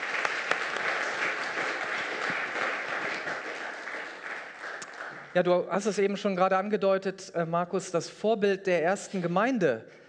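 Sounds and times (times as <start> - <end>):
audience applause: 0.0 - 5.4
speech: 5.4 - 10.0.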